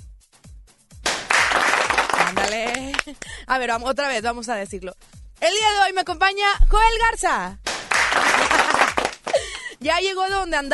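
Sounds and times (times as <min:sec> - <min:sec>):
short applause: 0:01.1 - 0:03.0, 0:07.7 - 0:09.4
laughter: 0:01.8 - 0:03.3, 0:08.0 - 0:09.6
speech: 0:02.5 - 0:07.6, 0:09.8 - 0:10.7.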